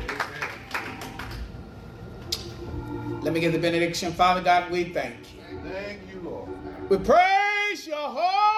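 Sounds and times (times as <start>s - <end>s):
audience hand clapping in praise: 0.0s - 1.7s
speech: 3.2s - 8.4s.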